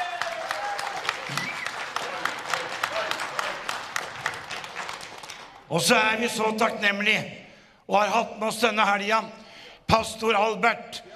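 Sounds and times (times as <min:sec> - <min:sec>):
audience applause: 0:00.0 - 0:05.7
speech: 0:05.7 - 0:11.0.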